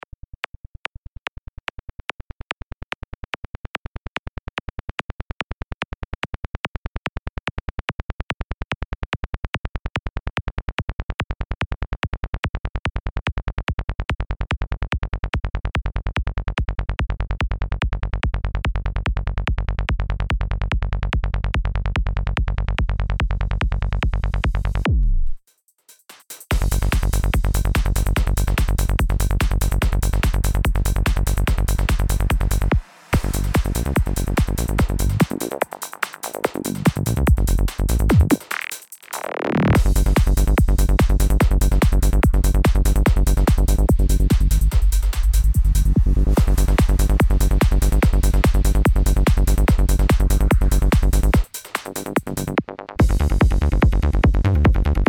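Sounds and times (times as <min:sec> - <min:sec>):
kick drum: 0:04.4 - 0:25.4, 0:26.5 - 0:35.4, 0:36.5 - 0:38.4, 0:39.8 - 0:51.5, 0:53.0 - 0:55.0
bass: 0:12.6 - 0:25.4, 0:26.5 - 0:55.0.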